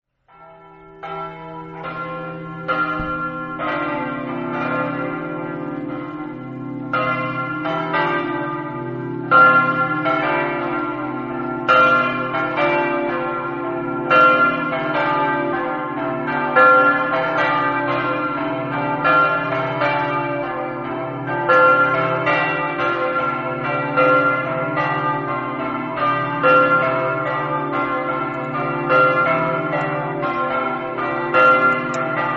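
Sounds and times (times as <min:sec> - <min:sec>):
bells ringing: 0:00.3 - 0:32.3.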